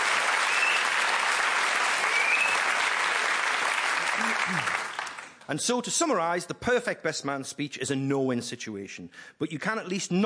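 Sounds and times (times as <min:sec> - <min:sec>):
crowd applause: 0:00.0 - 0:05.4
speech: 0:04.5 - 0:04.8, 0:05.5 - 0:10.2.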